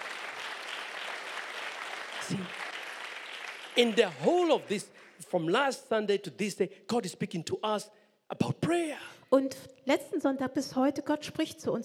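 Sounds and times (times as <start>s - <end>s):
crowd clapping: 0.0s - 5.4s
speech: 2.3s - 2.6s, 3.8s - 11.8s.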